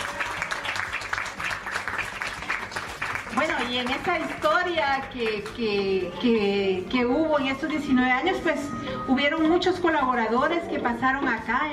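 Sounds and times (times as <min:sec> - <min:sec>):
audience applause: 0:00.0 - 0:05.6
speech: 0:03.7 - 0:11.7.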